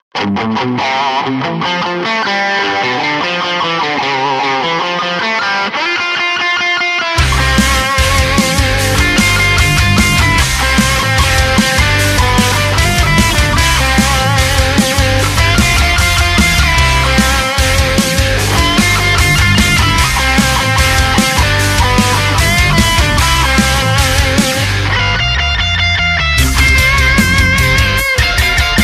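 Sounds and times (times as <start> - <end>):
rock cover song: 0.2 - 28.8.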